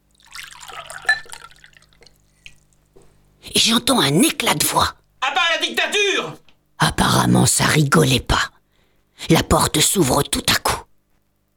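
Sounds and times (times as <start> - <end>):
water pouring from a carafe into a glass: 0.1 - 2.7
speech: 3.6 - 5.0, 5.6 - 8.5, 9.2 - 10.8.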